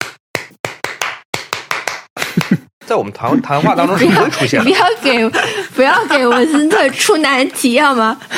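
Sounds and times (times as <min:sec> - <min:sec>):
rhythmic hand claps: 0:00.0 - 0:02.7
speech: 0:02.9 - 0:08.3
laughter: 0:03.3 - 0:07.5.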